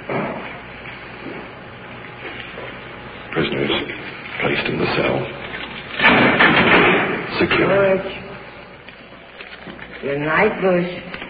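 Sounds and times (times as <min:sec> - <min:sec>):
speech: 0:03.4 - 0:05.4, 0:07.4 - 0:08.2, 0:10.0 - 0:11.1
jail cell door opened by jailer: 0:04.4 - 0:08.2.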